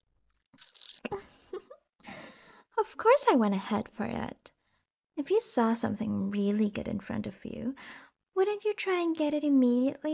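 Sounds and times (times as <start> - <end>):
biting into food: 0.5 - 1.2
chewing crackles: 0.6 - 1.1
speech: 2.9 - 4.5, 5.2 - 10.1.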